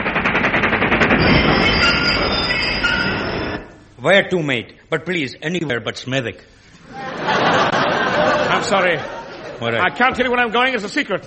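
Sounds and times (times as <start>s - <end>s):
train passing: 0.0s - 4.0s
speech: 4.0s - 7.4s, 8.5s - 11.2s
laughter: 6.8s - 10.5s.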